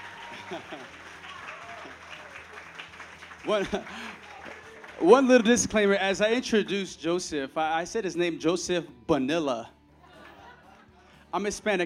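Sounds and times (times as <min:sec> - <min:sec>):
laughter: 0:00.0 - 0:02.4, 0:03.3 - 0:05.5, 0:10.0 - 0:11.2
audience applause: 0:00.0 - 0:05.7
speech: 0:00.5 - 0:01.2, 0:03.4 - 0:04.2, 0:05.0 - 0:09.8, 0:11.3 - 0:11.8.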